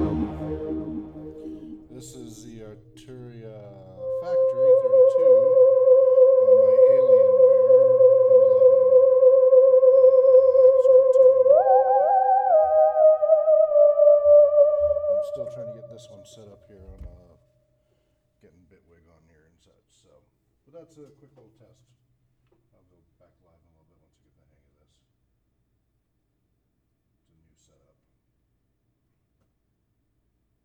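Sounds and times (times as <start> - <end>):
live broadcast improvised music: 0.0 - 16.2.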